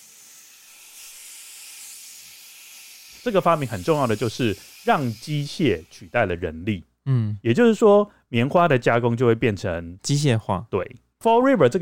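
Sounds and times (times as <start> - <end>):
steam engine hissing: 0.0 - 6.1
speech: 3.2 - 11.8.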